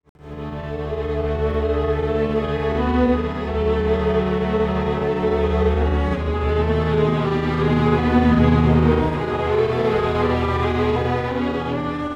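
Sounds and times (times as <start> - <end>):
time-stretched strings: 0.2 - 12.1.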